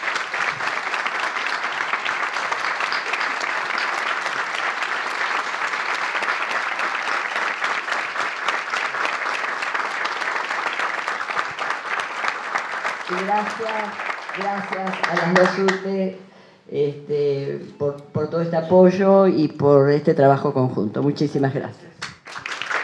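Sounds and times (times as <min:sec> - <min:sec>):
audience applause: 0:00.0 - 0:15.9, 0:22.2 - 0:22.8
speech: 0:13.4 - 0:21.9.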